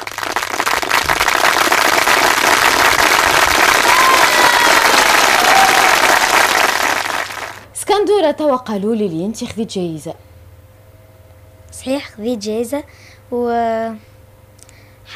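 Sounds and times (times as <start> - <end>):
audience applauding contest participants: 0.0 - 7.6
speech: 8.0 - 10.3, 11.8 - 14.1.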